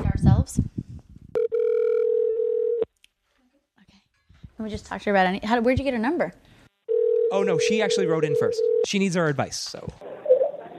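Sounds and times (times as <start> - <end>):
telephone dial tone: 1.4 - 2.9, 6.9 - 7.3, 8.4 - 8.8
speech: 4.6 - 6.5, 7.3 - 10.1.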